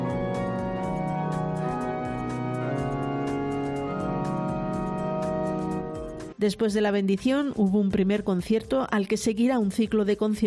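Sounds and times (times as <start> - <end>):
restored Epistle pipe organ of Granada Cathedral playing: 0.0 - 6.3
speech: 6.4 - 10.4.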